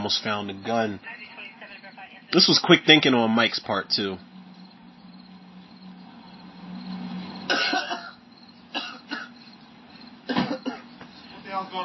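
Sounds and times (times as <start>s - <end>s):
speech: 0.0s - 1.3s, 2.3s - 4.3s
fake cough: 7.5s - 9.4s, 10.3s - 10.9s.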